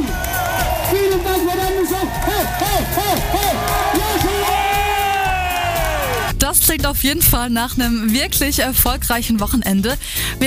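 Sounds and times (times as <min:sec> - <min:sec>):
crowd roar: 0:00.0 - 0:06.3
live audience cheering: 0:00.0 - 0:06.3
whoops and yells: 0:00.0 - 0:06.3
speech: 0:06.7 - 0:10.4.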